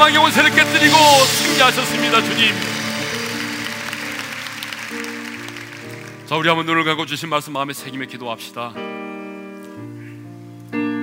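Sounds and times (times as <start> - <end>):
speech: 0.1 - 2.8, 6.3 - 9.0
applause: 0.8 - 6.9.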